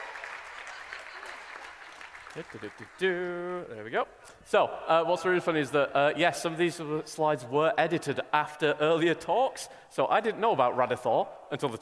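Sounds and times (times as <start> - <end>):
round of applause: 0.0 - 3.5
speech: 2.4 - 11.8.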